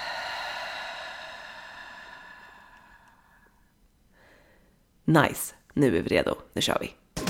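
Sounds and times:
long slow breath out through the mouth: 0.0s - 4.7s
speech: 5.1s - 7.0s.

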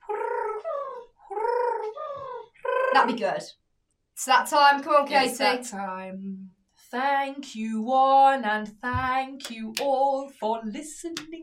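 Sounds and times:
person imitating pigeon cooing: 0.0s - 3.3s
speech: 2.9s - 3.6s, 4.2s - 11.4s.

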